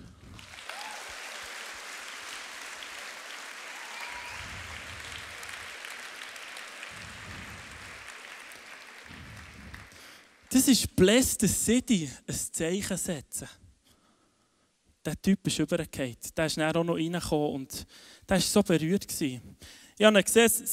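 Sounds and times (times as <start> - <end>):
audience applause: 0.3 - 10.5
speech: 10.5 - 13.6, 15.1 - 20.7.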